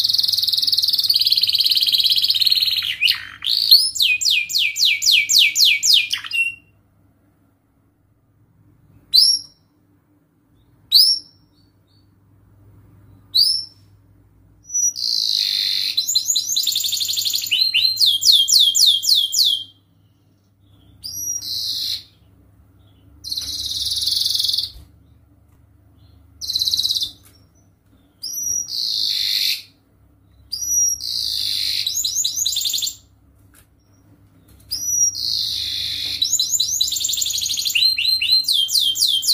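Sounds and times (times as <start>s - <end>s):
canary singing: 0.0s - 6.7s, 14.6s - 25.2s, 26.0s - 33.1s, 33.8s - 39.3s.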